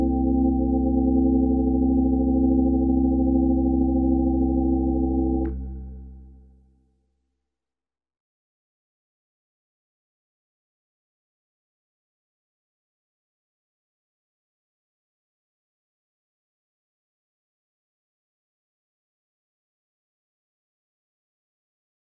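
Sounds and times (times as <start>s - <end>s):
organ: 0.0s - 6.4s.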